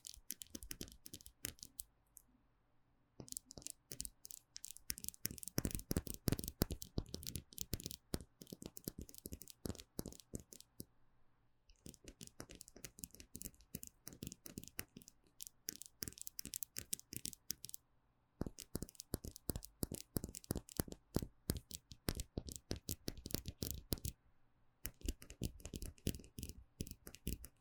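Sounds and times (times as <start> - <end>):
gel nail supplies tapped and scratched: 3.2 - 10.7, 11.8 - 17.8, 18.4 - 24.1, 24.9 - 27.5.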